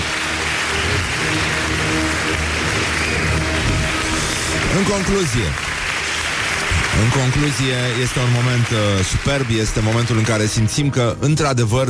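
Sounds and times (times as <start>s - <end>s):
applause: 0.0s - 11.0s
speech: 4.8s - 5.7s, 7.0s - 11.8s.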